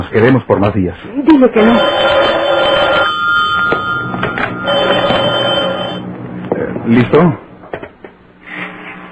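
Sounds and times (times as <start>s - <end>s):
speech: 0.0s - 2.2s, 6.9s - 7.4s
telephone bell ringing in a metallic trill: 1.6s - 6.1s.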